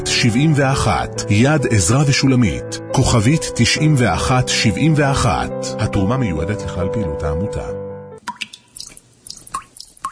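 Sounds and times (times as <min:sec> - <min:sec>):
speech: 0:00.0 - 0:07.8
water dripping from a leaking tap: 0:08.2 - 0:10.1.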